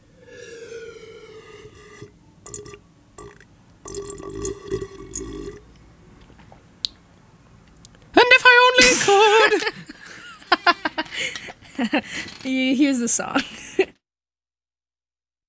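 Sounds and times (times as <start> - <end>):
vocal imitation of someone drinking water: 0.0 - 5.7
laughter: 8.8 - 12.3
speech: 11.8 - 13.6.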